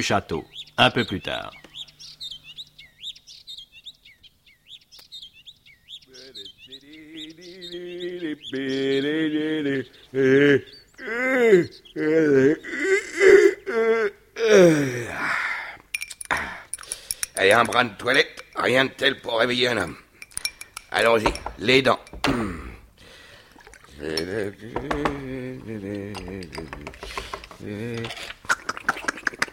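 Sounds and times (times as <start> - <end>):
speech: 0.0 - 1.6, 8.3 - 12.8, 14.5 - 15.4, 17.4 - 20.0, 20.9 - 22.5, 24.0 - 26.2, 27.6 - 28.3
robin singing at dawn: 0.0 - 14.1, 15.6 - 29.5
man vocalizing loudly: 6.1 - 15.6, 21.0 - 22.9, 23.8 - 29.5.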